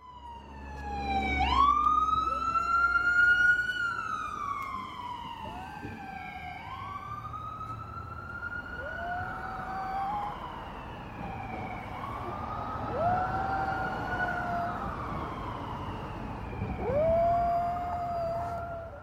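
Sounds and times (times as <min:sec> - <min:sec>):
siren wailing: 0:00.0 - 0:19.0
Havanese dog howling along with a siren: 0:08.8 - 0:10.5, 0:12.8 - 0:15.2, 0:16.7 - 0:19.0.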